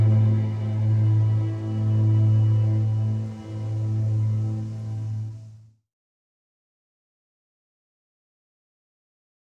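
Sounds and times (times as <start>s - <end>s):
string orchestra cue: 0.0s - 5.4s.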